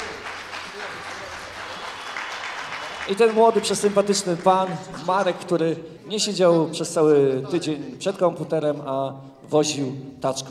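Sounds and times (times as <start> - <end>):
audience applause: 0.0 - 5.4
speech: 3.1 - 10.5.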